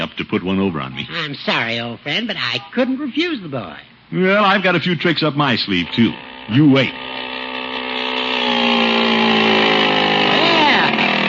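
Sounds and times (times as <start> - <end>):
speech: 0.2 - 7.2
small motor running on a motorized bicycle: 4.6 - 11.2.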